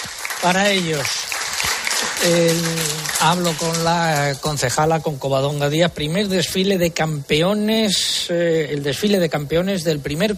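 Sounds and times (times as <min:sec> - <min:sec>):
crowd applause: 0:00.0 - 0:04.6
speech: 0:00.4 - 0:01.3, 0:02.2 - 0:10.3.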